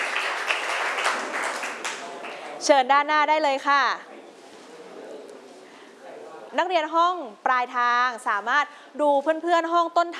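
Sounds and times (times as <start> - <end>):
students in a classroom clapping for a group of classmates: 0.0 - 2.5
speech: 2.6 - 4.1, 6.5 - 10.1.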